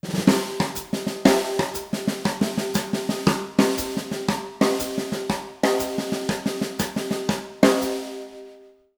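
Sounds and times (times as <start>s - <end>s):
breakbeat: 0.0s - 8.0s.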